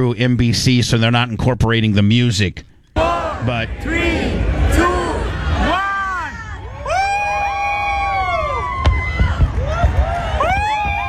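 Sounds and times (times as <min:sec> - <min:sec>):
speech: 0:00.0 - 0:02.7, 0:03.4 - 0:04.9
crowd cheering: 0:02.9 - 0:11.0
fireworks: 0:08.7 - 0:11.0.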